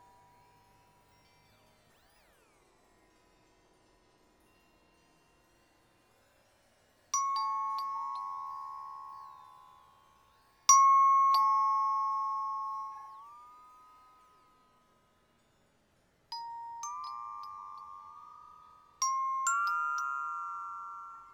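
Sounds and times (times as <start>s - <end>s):
rubber bells: 7.2s - 9.7s, 10.7s - 14.0s, 16.4s - 21.3s.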